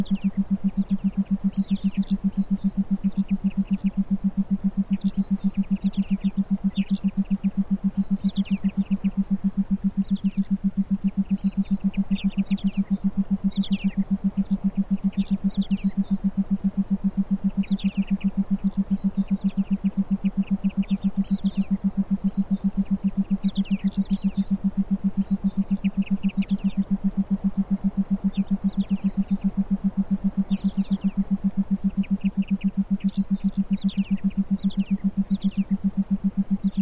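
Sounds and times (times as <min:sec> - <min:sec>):
theta binaural beats for meditation: 0:00.0 - 0:36.8.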